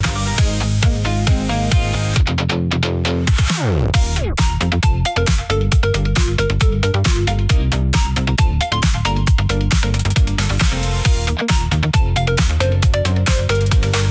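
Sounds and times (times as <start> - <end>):
music loop: 0.0 - 14.0.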